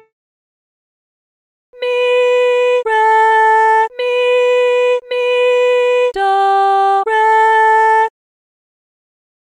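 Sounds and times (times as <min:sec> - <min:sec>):
person singing solfa training exercise: 0:01.8 - 0:08.1.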